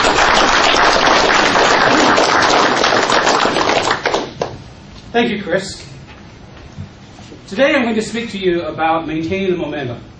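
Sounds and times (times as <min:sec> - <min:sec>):
crowd clapping: 0:00.0 - 0:04.6
speech: 0:05.2 - 0:05.9, 0:07.5 - 0:10.1.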